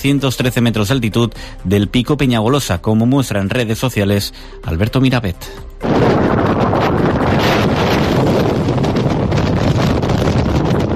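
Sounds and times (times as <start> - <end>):
speech: 0.0 - 7.8
strong wind on snowy Peñagolosa peak in Castellón: 5.8 - 10.9.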